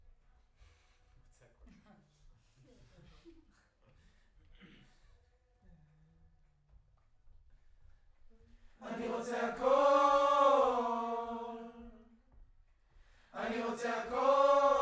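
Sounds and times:
distant choir: 0:08.8 - 0:12.0, 0:13.3 - 0:14.8.

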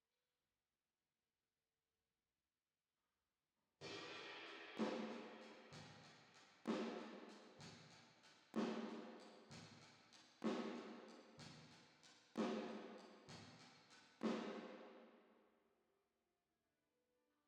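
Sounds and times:
drums with reverb: 0:03.8 - 0:14.8.

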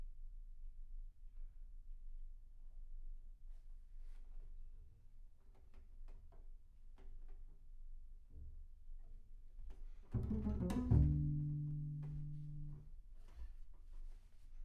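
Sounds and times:
bass sound: 0:10.2 - 0:12.9.

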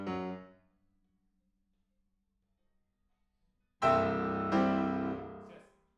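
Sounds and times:
piano: 0:00.0 - 0:00.6, 0:03.8 - 0:05.6.

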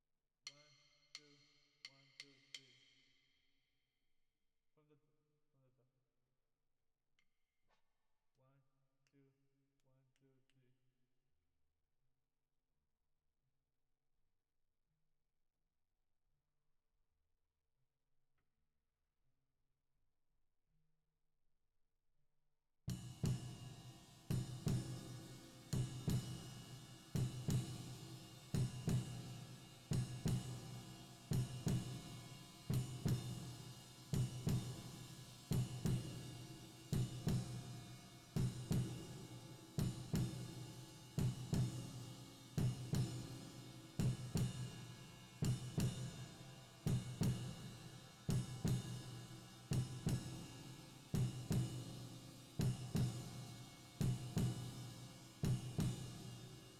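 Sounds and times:
drums with reverb: 0:22.9 - 0:56.7.

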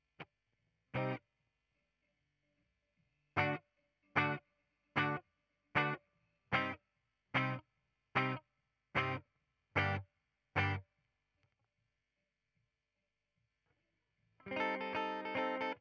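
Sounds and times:
ragtime guitar: 0:01.0 - 0:01.2, 0:03.4 - 0:03.6, 0:04.2 - 0:04.4, 0:05.0 - 0:05.2, 0:05.8 - 0:06.8, 0:07.4 - 0:07.6, 0:08.2 - 0:08.4, 0:09.0 - 0:09.2, 0:09.8 - 0:10.0, 0:10.6 - 0:10.8, 0:14.5 - 0:15.7.

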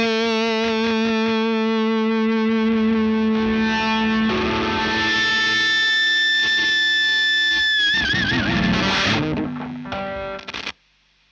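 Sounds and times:
electric guitar through Marshall amplifier line: 0:00.0 - 0:10.8.

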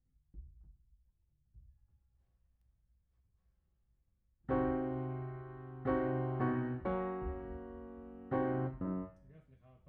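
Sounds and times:
piano: 0:04.5 - 0:09.3.

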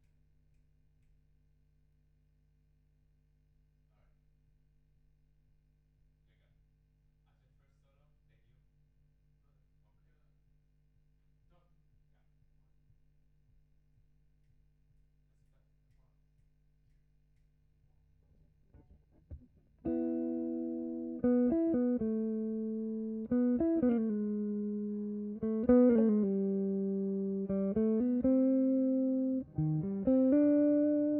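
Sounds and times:
guitar: 0:18.7 - 0:31.1.

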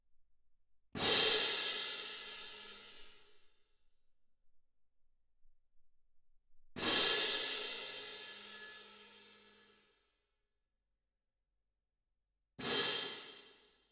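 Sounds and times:
percussion: 0:01.0 - 0:03.4, 0:06.8 - 0:09.8, 0:12.6 - 0:13.8.

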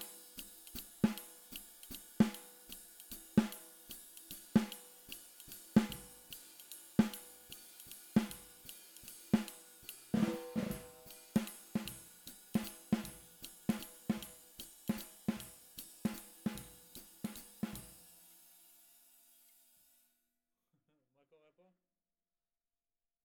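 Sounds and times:
snare drum: 0:00.0 - 0:18.3.

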